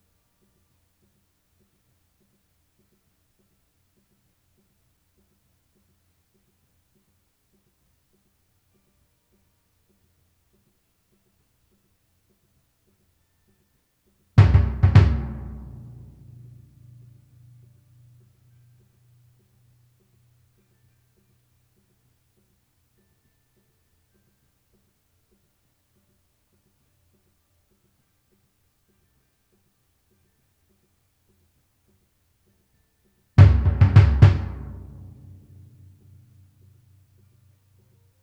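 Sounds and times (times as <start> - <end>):
timpani: 14.4 - 17.6, 33.4 - 36.1.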